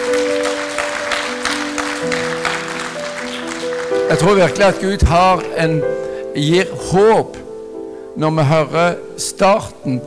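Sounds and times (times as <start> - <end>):
audience applause: 0.0 - 4.8
speech: 4.1 - 7.4, 8.2 - 10.0.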